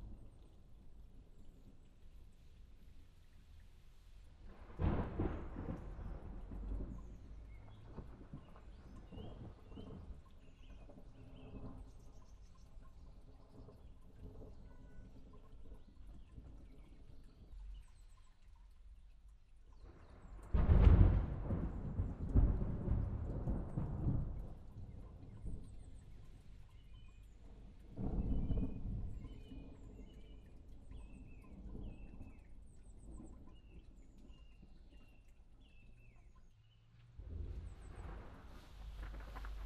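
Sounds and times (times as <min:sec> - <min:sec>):
thunderstorm: 0:04.4 - 0:12.1, 0:19.8 - 0:26.4, 0:27.5 - 0:34.4, 0:37.2 - 0:39.6.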